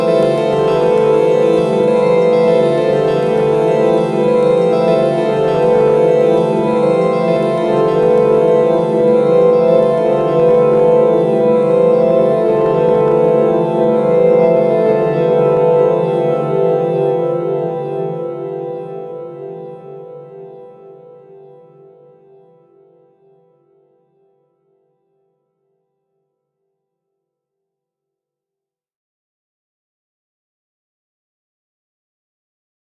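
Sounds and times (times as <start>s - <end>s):
dark piano loop: 0.0s - 21.7s.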